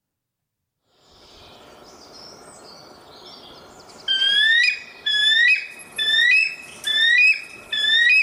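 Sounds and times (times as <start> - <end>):
bald eagle calls: 4.1 - 8.2.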